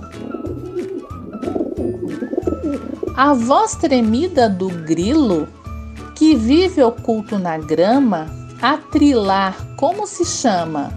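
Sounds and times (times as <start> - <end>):
dove cooing: 0.1 - 3.4
speech: 3.2 - 5.6, 6.2 - 10.9.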